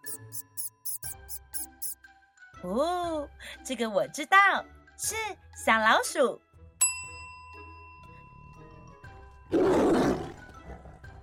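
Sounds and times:
speech: 2.6s - 6.5s
tiger roar: 9.5s - 11.2s.

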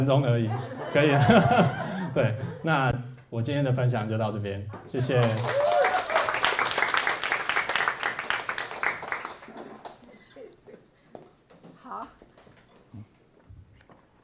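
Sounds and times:
speech: 0.0s - 5.8s
laughter: 0.2s - 3.0s
crowd applause: 5.0s - 10.1s.

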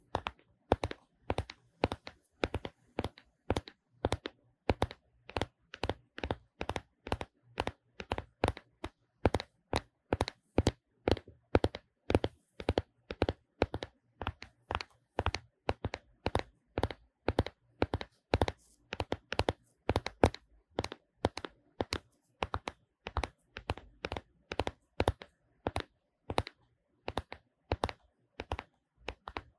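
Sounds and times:
phone and camera lens knocked together: 0.0s - 29.5s.

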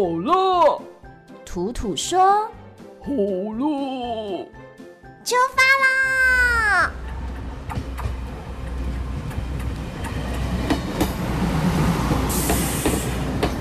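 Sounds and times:
speech: 0.0s - 0.5s, 1.6s - 4.6s, 5.2s - 7.0s
train rumbling along the tracks: 6.4s - 13.5s.

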